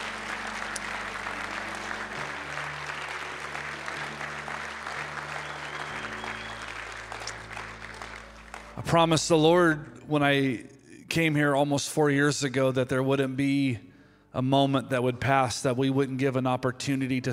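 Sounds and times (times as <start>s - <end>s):
audience applause: 0.0s - 9.0s
speech: 8.8s - 17.3s.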